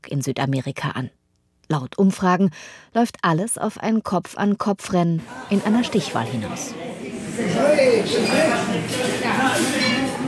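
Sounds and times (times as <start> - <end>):
speech: 0.1 - 10.0
murmur of many voices in a restaurant: 5.2 - 10.2
dishes and cutlery clinking in a busy restaurant: 8.1 - 10.2.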